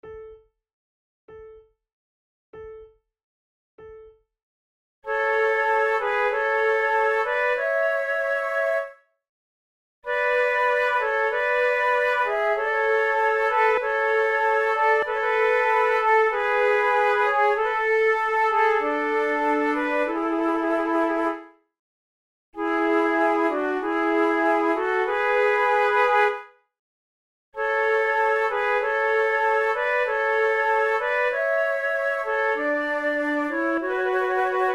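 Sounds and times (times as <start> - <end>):
slow trio sonata with flute: 5.2 - 8.9, 10.1 - 21.4, 22.6 - 26.4, 27.7 - 34.7.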